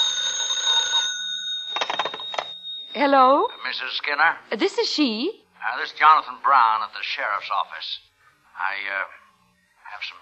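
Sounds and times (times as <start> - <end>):
telephone ringing: 0.0 - 4.4
speech: 3.0 - 9.2, 10.0 - 10.1.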